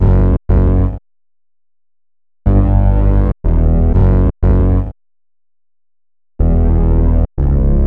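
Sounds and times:
bass synth: 0:00.0 - 0:01.0, 0:02.5 - 0:05.0, 0:06.4 - 0:07.8.

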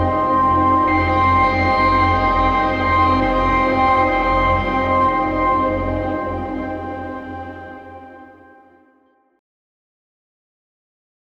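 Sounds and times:
dramatic synth pad loop in F minor: 0:00.0 - 0:08.8.

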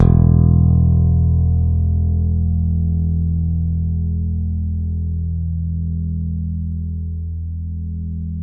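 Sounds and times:
bass open E1 string note: 0:00.0 - 0:08.4.

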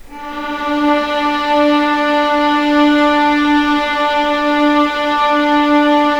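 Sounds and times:
legato D2 note: 0:00.0 - 0:06.1.

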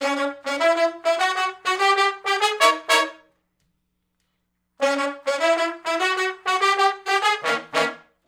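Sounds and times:
R&B horn riff in C sharp minor from unison to harmony: 0:00.0 - 0:03.3, 0:04.8 - 0:08.1.

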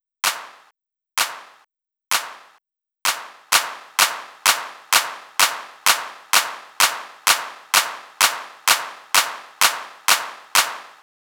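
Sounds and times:
drum loop: 0:00.2 - 0:11.0
hand claps: 0:00.2 - 0:11.0.

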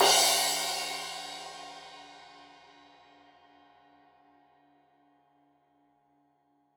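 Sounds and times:
15 inch crash cymbal edge hit: 0:00.0 - 0:02.1.

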